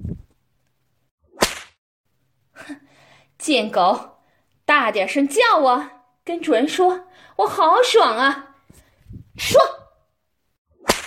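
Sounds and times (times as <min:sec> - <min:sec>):
whip lash: 0:01.4 - 0:01.8, 0:10.8 - 0:11.0
speech: 0:03.4 - 0:04.1, 0:04.8 - 0:08.5, 0:09.4 - 0:09.8.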